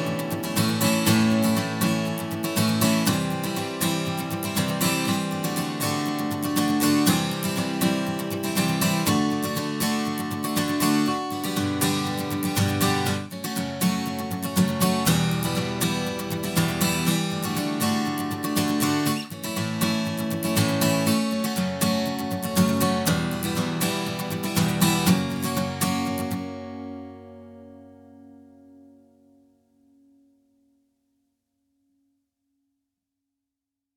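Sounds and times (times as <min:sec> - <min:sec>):
acoustic guitar: 0:00.0 - 0:30.9.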